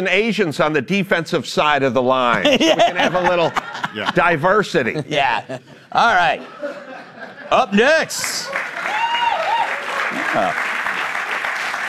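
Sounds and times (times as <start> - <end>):
speech: 0.0 - 6.8, 7.5 - 8.7, 10.3 - 10.7
laughter: 2.2 - 8.8
studio audience applause: 7.5 - 11.8.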